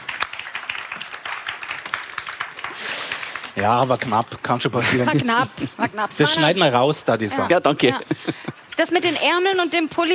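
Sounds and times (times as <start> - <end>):
audience applause: 0.0 - 4.3
speech: 3.6 - 10.1.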